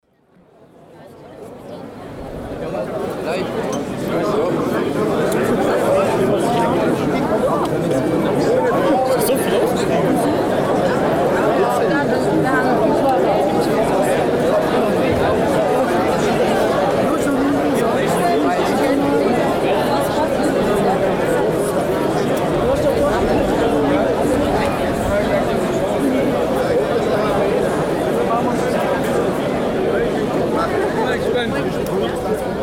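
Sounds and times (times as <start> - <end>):
crowd murmuring in Swabian: 0.9 - 32.6.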